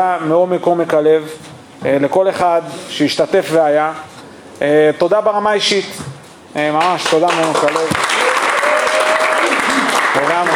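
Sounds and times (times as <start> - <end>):
speech: 0.0 - 8.0
audience applause: 7.0 - 10.5.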